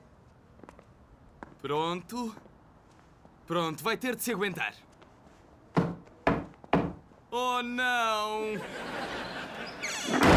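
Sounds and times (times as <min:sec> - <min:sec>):
speech: 0:01.6 - 0:02.5, 0:03.5 - 0:04.9, 0:07.3 - 0:09.3
hammering on wood: 0:05.8 - 0:07.0
laughter: 0:08.5 - 0:10.2.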